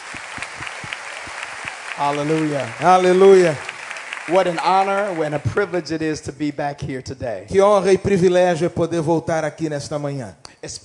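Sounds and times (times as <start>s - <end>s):
audience applause: 0.0s - 6.0s
speech: 2.0s - 3.7s, 4.3s - 10.8s.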